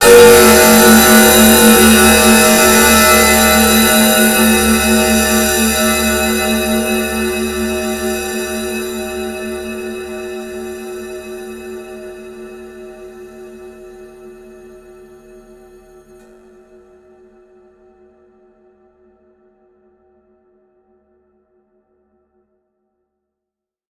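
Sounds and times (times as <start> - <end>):
scary drone: 0.0 - 12.6.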